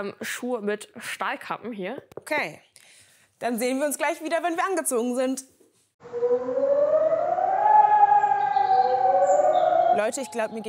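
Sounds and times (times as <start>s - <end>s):
speech: 0.0s - 6.8s, 10.0s - 10.6s
fire station alarm siren wailing: 6.0s - 10.6s.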